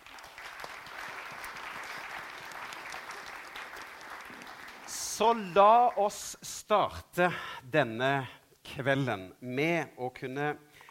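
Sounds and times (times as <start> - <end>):
audience applause: 0.0 - 6.0
speech: 5.2 - 10.7.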